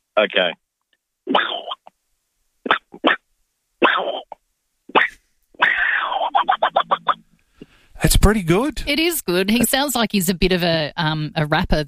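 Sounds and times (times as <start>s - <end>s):
speech: 0.2s - 0.6s, 1.3s - 1.6s, 8.0s - 11.8s
voice imitating a cartoon duck sneezing: 1.3s - 1.9s, 2.7s - 3.2s, 3.8s - 7.2s.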